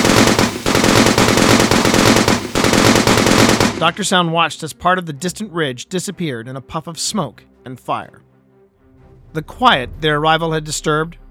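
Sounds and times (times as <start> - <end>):
Gatling gun firing: 0.0 - 4.0
speech: 3.8 - 8.3, 9.3 - 11.2.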